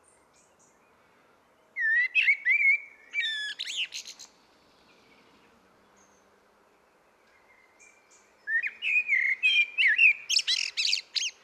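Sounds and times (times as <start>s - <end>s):
common blackbird Turdus merula singing: 1.6s - 6.3s, 7.1s - 11.4s.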